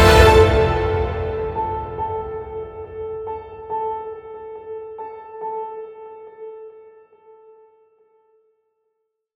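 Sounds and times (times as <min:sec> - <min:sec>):
epic trailer music: 0:00.0 - 0:03.6.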